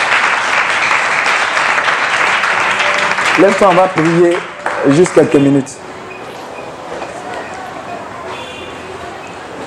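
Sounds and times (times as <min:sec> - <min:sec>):
church congregation applauding during a worship service: 0:00.0 - 0:05.7
speech: 0:03.4 - 0:05.9.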